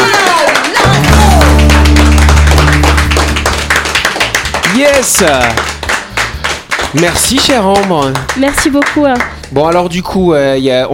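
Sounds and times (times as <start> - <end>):
applause: 0.0 - 10.2
sustained low musical tone: 0.9 - 4.3
speech: 4.8 - 5.8, 6.9 - 10.9.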